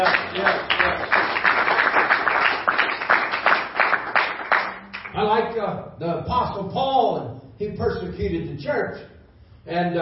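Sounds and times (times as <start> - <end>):
speech: 0.0 - 1.2, 5.2 - 9.9
crowd clapping hands: 0.0 - 5.2.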